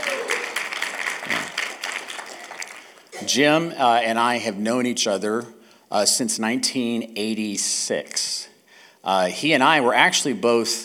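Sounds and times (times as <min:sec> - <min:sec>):
scattered round of applause from a group: 0:00.0 - 0:03.2
speech: 0:03.3 - 0:10.8.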